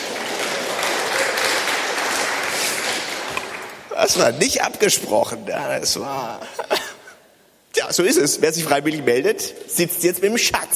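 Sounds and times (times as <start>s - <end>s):
audience applause: 0.0s - 3.9s
speech: 4.0s - 6.7s, 7.8s - 10.7s.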